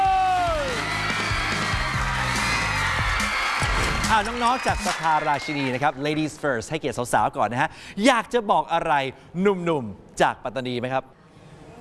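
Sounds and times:
crowd cheering welcoming student teams on a televised school competition: 0.0 - 6.7
speech: 4.1 - 11.2.

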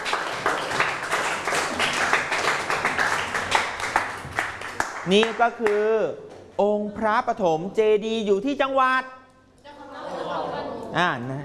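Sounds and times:
classroom applause for a student: 0.0 - 5.8
speech: 5.0 - 9.2, 10.9 - 11.4.

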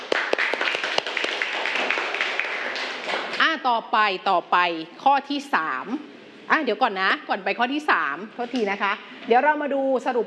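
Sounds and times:
students clapping for classmates: 0.0 - 3.5
speech: 3.6 - 10.2.

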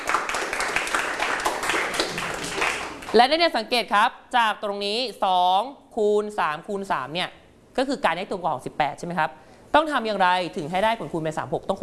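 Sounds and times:
classroom students clapping: 0.0 - 3.2
speech: 3.1 - 11.8.

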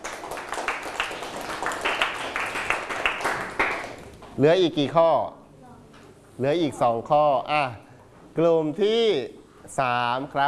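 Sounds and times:
class applauding for a classmate: 0.0 - 4.1
speech: 4.4 - 5.4, 6.4 - 10.4.

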